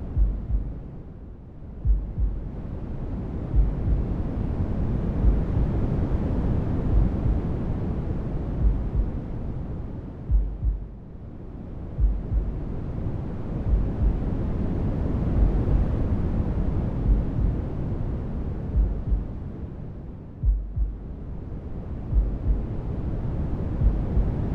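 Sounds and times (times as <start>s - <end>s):
heartbeat: 0.0s - 0.8s, 1.8s - 2.5s, 3.5s - 4.1s, 5.2s - 5.8s, 6.9s - 7.4s, 8.6s - 9.2s, 10.3s - 11.0s, 12.0s - 12.6s, 13.7s - 14.3s, 15.4s - 16.0s, 17.0s - 17.6s, 18.7s - 19.4s, 20.4s - 21.1s, 22.1s - 22.8s, 23.8s - 24.5s
noise: 0.0s - 24.5s.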